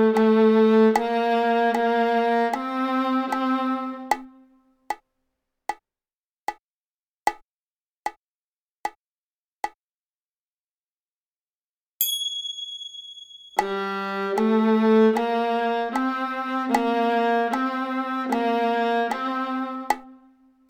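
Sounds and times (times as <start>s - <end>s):
viola G string played: 0.0s - 4.5s, 13.6s - 20.4s.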